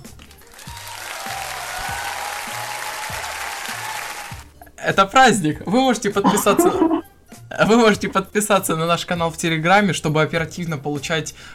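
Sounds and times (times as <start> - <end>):
applause sound effect: 0.0 - 4.5
speech: 4.8 - 7.0, 7.6 - 11.5
laughter: 6.3 - 7.0.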